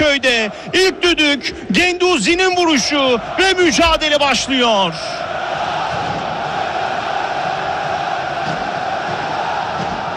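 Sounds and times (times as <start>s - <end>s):
football supporters chanting in a stadium: 0.0s - 10.1s
speech: 0.1s - 5.2s.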